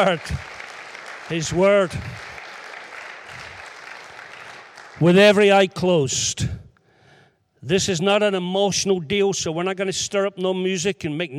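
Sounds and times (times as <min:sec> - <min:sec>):
speech: 0:00.0 - 0:00.6, 0:01.3 - 0:02.3, 0:05.0 - 0:06.6, 0:07.6 - 0:11.3
audience applauding: 0:00.0 - 0:05.6.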